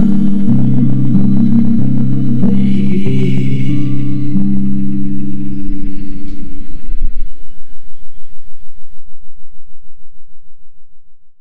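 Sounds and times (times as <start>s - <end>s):
cassette organ: 0.0s - 8.7s.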